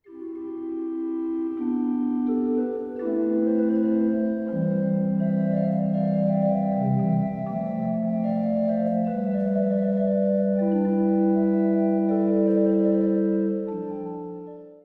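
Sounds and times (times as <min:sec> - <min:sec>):
organ adagio suite in C major: 0:00.0 - 0:14.8.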